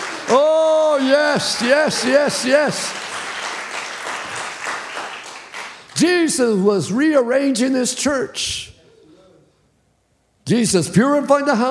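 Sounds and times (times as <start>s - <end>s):
congregation clapping: 0.0s - 6.1s
speech: 1.0s - 3.0s, 6.0s - 8.7s, 10.5s - 11.6s.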